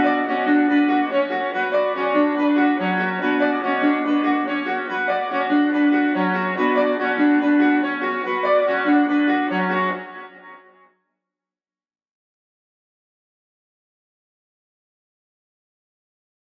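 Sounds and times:
piano melody loop in F sharp minor: 0.0s - 10.5s.

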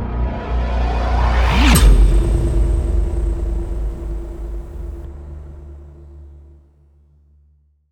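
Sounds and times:
riser sweep: 0.1s - 5.8s.

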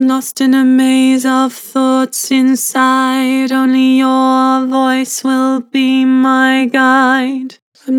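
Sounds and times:
person singing with vibrato: 0.0s - 7.9s.

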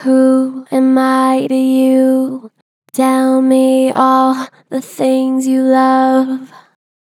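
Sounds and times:
gentle flat-pitch vocals: 0.0s - 6.8s.

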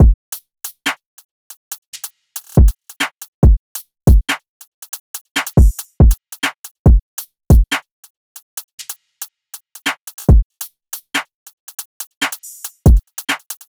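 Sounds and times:
drum loop: 2.0s - 2.8s, 3.4s - 4.4s, 5.4s - 7.8s, 9.8s - 10.5s, 12.2s - 13.6s.

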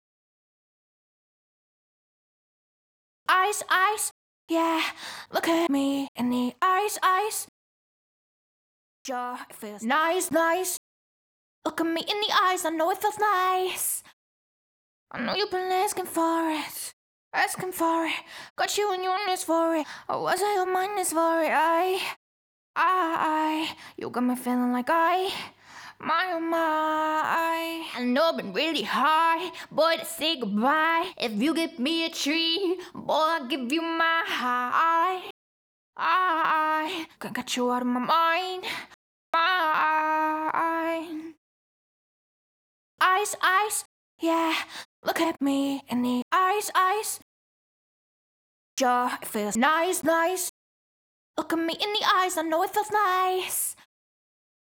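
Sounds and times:
pop vocals acapella in E major at 145 BPM: 3.3s - 7.5s, 9.1s - 10.8s, 11.7s - 14.0s, 15.2s - 22.2s, 22.8s - 35.3s, 36.0s - 38.8s, 39.4s - 41.4s, 43.0s - 47.2s, 48.8s - 50.5s, 51.4s - 53.8s.

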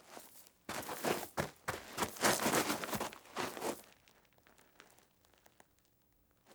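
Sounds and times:
footsteps in gravel snow: 0.7s - 3.8s.

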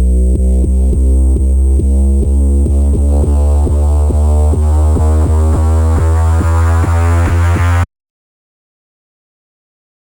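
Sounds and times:
bass line in F minor: 0.0s - 7.9s.

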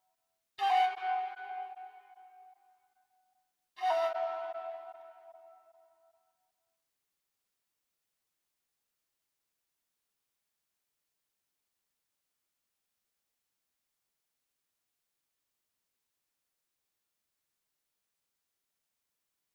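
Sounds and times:
B minor trap flute melody: 0.6s - 2.5s, 3.8s - 5.8s.

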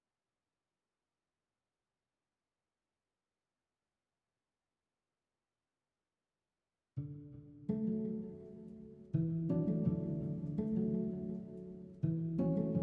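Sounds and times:
muted harp melody loop in B minor: 7.7s - 12.8s.

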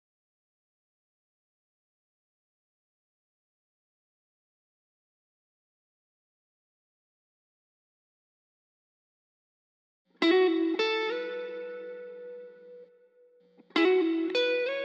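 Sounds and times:
guitar lead melody in A major: 10.2s - 14.8s.

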